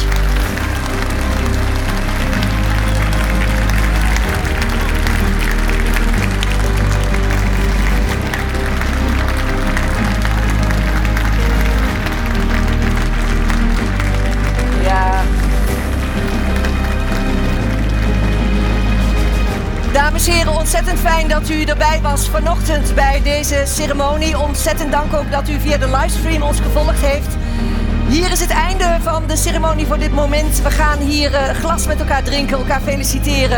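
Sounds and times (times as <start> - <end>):
audience applause: 0.0 - 21.4
speech: 21.0 - 33.5.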